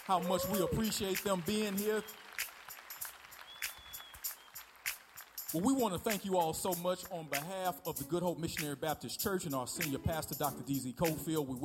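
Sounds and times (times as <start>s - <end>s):
church audience applause: 0.0s - 5.4s
speech: 0.1s - 2.4s, 5.5s - 11.6s.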